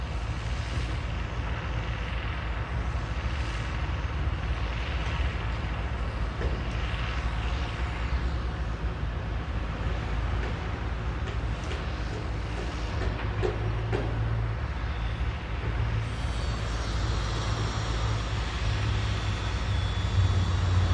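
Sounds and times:
construction works in an industrial city: 0.0 - 20.9.

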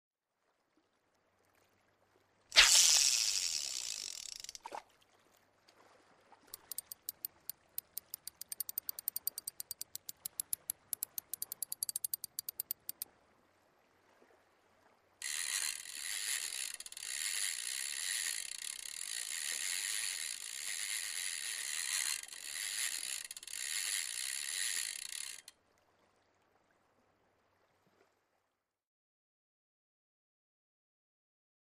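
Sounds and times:
fishing pole being used: 2.6 - 4.8, 6.5 - 13.0, 15.2 - 25.5.

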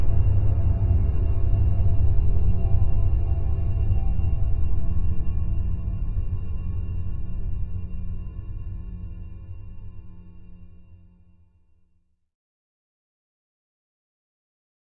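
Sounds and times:
foreboding drone: 0.0 - 11.0.

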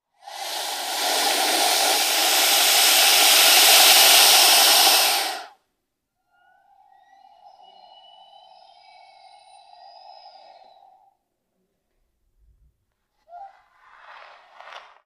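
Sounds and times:
Burmese python hissing: 0.0 - 5.6, 6.5 - 11.2.

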